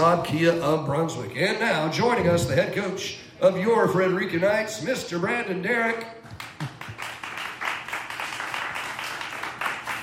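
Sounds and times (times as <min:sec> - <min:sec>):
speech: 0:00.1 - 0:06.7
crowd applauding: 0:06.3 - 0:10.0.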